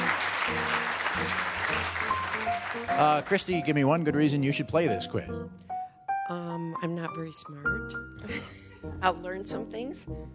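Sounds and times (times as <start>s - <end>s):
audience applause: 0.0s - 4.0s
speech: 2.8s - 5.7s, 6.3s - 10.3s.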